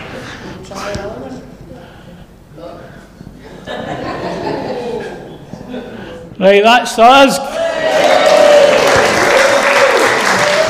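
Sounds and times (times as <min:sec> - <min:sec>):
speech: 0:00.7 - 0:01.5, 0:06.4 - 0:08.1
laughter: 0:03.4 - 0:06.2
audience applause: 0:07.6 - 0:10.6.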